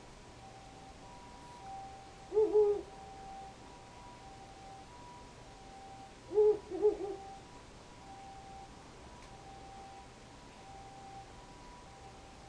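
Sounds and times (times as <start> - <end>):
faint background hum: 0.0 - 12.4
owl hooting: 1.6 - 3.5, 6.3 - 7.4.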